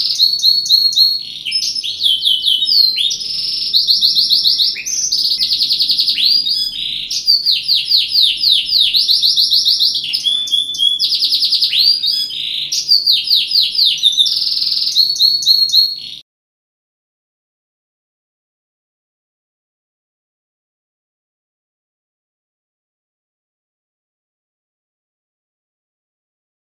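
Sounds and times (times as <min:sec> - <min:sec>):
modified gladiator canary singing: 0:00.0 - 0:16.2.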